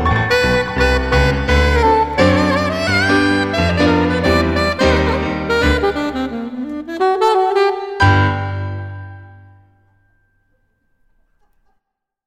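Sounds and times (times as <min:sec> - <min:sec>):
saxophone: 0:00.0 - 0:09.6.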